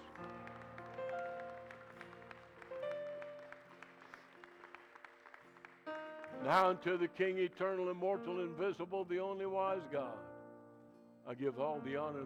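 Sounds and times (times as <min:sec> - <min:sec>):
audience hand clapping: 0:00.0 - 0:07.8
speech: 0:06.4 - 0:10.3, 0:11.2 - 0:12.2.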